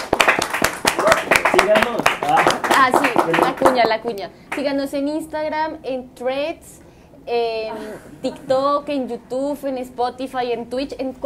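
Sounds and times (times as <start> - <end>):
audience applause: 0.0 - 3.8
speech: 1.6 - 11.2.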